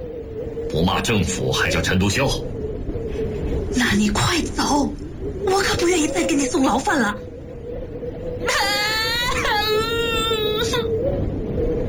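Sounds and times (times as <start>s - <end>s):
low hum: 0.0s - 11.8s
speech: 0.7s - 2.5s, 3.7s - 7.2s
small child bursting into loud crying: 8.4s - 10.9s.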